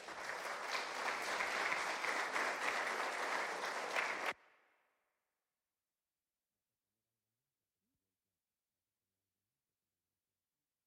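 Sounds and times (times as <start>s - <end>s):
audience applause: 0.0s - 4.4s.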